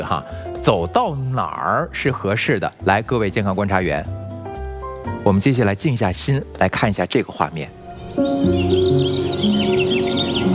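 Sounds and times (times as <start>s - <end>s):
speech: 0.0s - 4.2s, 5.2s - 9.1s
birds chirping and twittering outdoors: 7.3s - 10.5s.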